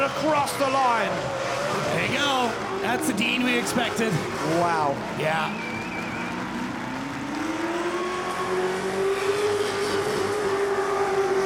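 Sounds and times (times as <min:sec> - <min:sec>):
Ford Mustang V8 engine screaming: 0:00.0 - 0:11.4
speech: 0:00.1 - 0:05.7.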